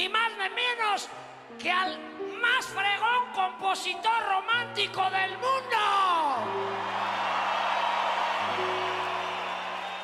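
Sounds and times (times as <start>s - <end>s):
speech: 0.0s - 7.2s
audience applause: 6.4s - 10.0s.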